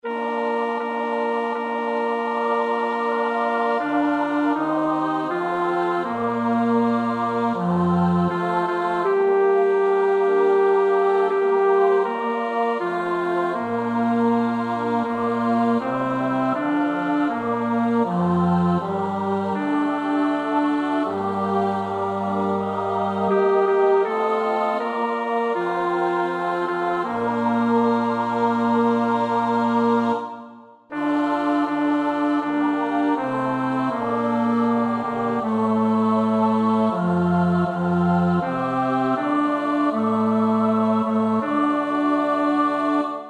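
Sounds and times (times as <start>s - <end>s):
bass: 0.1s - 30.2s, 31.0s - 43.0s.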